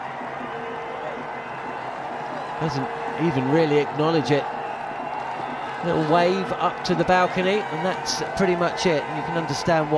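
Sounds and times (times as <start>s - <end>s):
cricket crowd cheering: 0.0s - 9.9s
speech: 2.6s - 4.6s, 5.8s - 9.9s.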